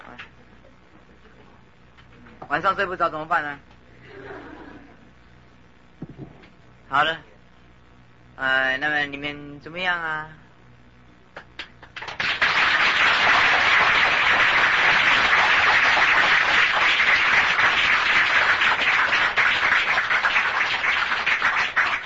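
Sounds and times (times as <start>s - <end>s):
speech: 2.5s - 3.7s, 6.9s - 7.3s, 8.4s - 10.4s
audience clapping hands: 11.3s - 22.0s.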